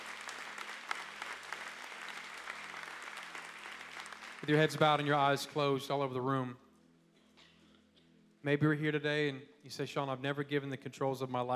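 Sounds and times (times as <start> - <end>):
audience clapping hands: 0.0 - 6.0
speech: 4.4 - 6.6, 8.4 - 11.5.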